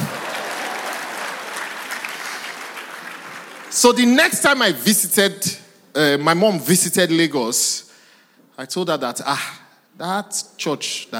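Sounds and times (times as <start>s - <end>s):
audience applause: 0.0s - 3.8s
speech: 3.8s - 7.9s, 8.6s - 11.1s.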